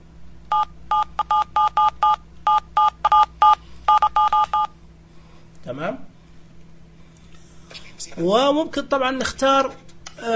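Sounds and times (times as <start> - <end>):
faint low hum: 0.0 - 10.3
telephone keypad button tones: 0.5 - 4.7
speech: 5.8 - 6.1, 8.2 - 10.3.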